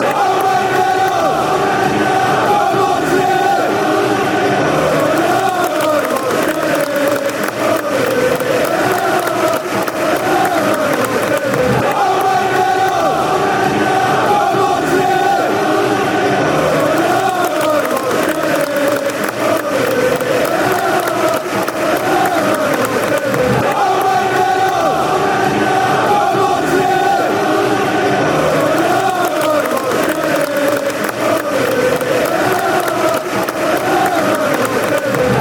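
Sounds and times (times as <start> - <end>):
fans chanting: 0.0 - 35.3.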